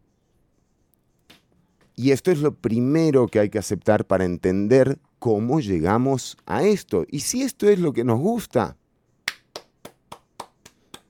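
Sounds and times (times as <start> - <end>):
speech: 2.0 - 8.8
sharp claps: 9.2 - 11.0.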